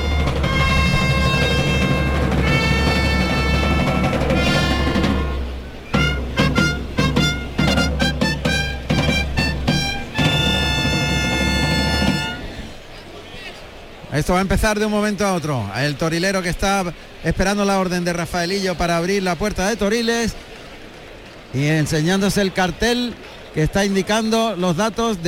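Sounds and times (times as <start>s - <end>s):
bullring kettledrums: 0.0s - 12.7s
bullring bugle call: 0.0s - 12.8s
speech: 14.3s - 20.5s, 21.5s - 25.2s.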